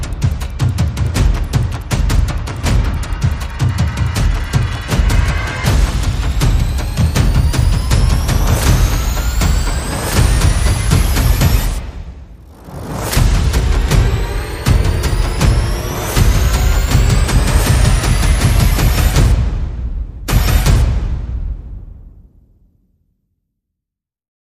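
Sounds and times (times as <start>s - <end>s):
percussion: 0.0s - 22.4s
sound effects: 2.6s - 21.3s.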